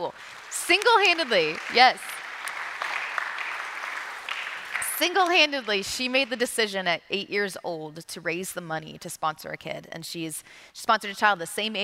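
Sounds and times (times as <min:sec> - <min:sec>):
speech: 0:00.0 - 0:02.1, 0:05.0 - 0:11.8
audience applause: 0:00.0 - 0:06.1.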